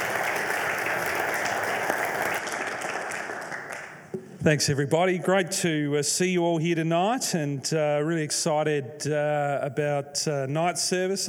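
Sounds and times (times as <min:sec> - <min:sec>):
crowd applauding: 0:00.0 - 0:04.2
speech: 0:04.4 - 0:11.2.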